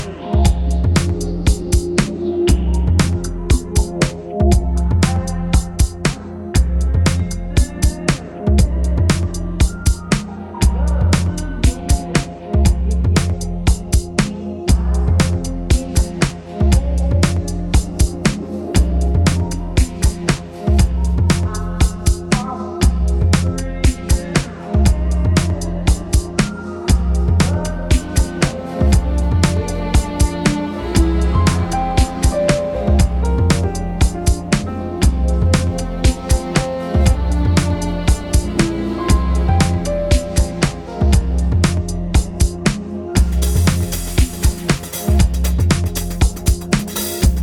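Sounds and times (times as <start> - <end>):
blues music: 0.0 - 47.4.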